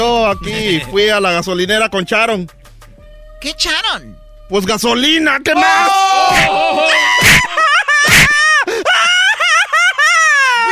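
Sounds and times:
speech: 0.3 - 2.6, 3.4 - 7.1
man crying and wailing loudly: 5.5 - 10.6
laughter: 6.4 - 10.1.

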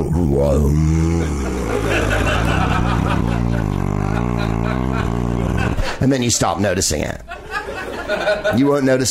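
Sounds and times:
voice imitating a large air conditioner starting up: 0.0 - 6.3
speech: 0.3 - 1.8, 6.0 - 7.3, 8.3 - 9.1
laughter: 1.0 - 6.0, 7.2 - 9.0.

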